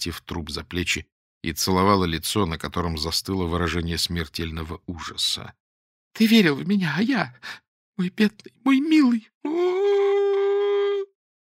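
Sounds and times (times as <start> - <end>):
speech: 0.0 - 5.6, 6.2 - 9.8
woman howling like a wolf: 9.5 - 11.1.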